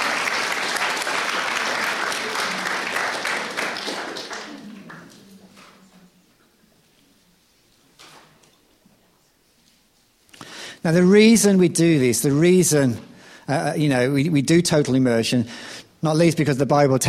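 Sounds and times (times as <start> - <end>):
audience applause: 0.0 - 5.5
speech: 10.8 - 17.0.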